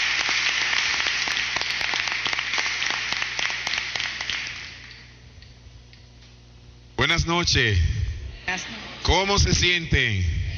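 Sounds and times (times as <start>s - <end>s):
audience applause: 0.0s - 5.0s
speech: 7.2s - 7.9s, 8.5s - 10.3s.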